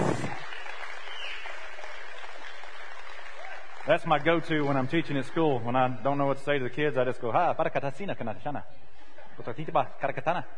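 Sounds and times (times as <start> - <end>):
applause for the kids and the youth: 0.0 - 6.2
speech: 3.9 - 8.8, 9.4 - 10.5.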